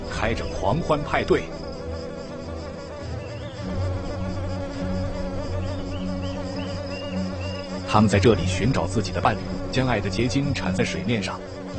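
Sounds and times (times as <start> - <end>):
swarm of mosquitoes buzzing over water: 0.0 - 11.7
speech: 0.2 - 1.6, 7.9 - 11.6.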